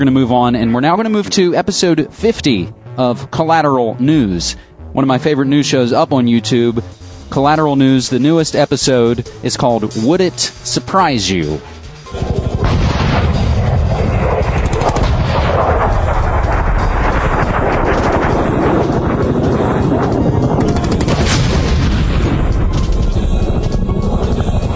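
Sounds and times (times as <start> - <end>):
speech: 0.0 - 12.4
anti-aircraft gunfire: 12.1 - 24.7
explosions: 12.1 - 24.7.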